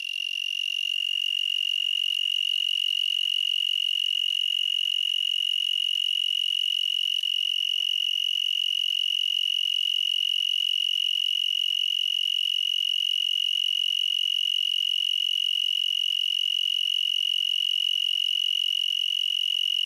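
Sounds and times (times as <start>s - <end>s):
broad-winged tree cricket Oecanthus latipennis trilling: 0.0s - 19.8s.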